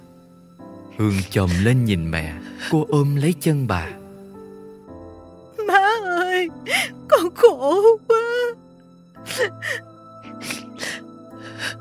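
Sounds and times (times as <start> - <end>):
steady tonal background: 0.0 - 11.7
speech: 1.0 - 4.0, 7.4 - 8.2, 9.4 - 9.9
girl crying: 5.6 - 8.6, 9.2 - 11.7.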